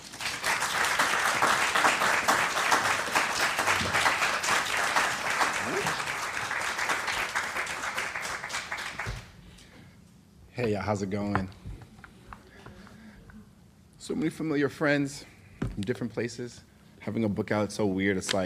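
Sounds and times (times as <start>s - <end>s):
audience applause welcoming a guest before a book reading in Philadelphia: 0.0s - 9.4s
speech: 10.6s - 11.6s, 14.1s - 18.4s.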